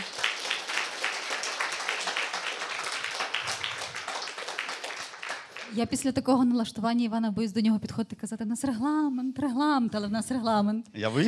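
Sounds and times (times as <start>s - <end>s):
audience applause: 0.0s - 5.9s
speech: 5.7s - 11.2s.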